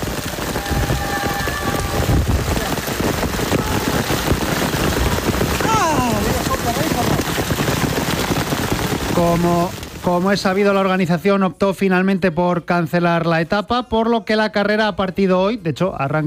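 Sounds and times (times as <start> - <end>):
heavy hailstorm pounding down: 0.0 - 11.3
speech: 9.3 - 16.2.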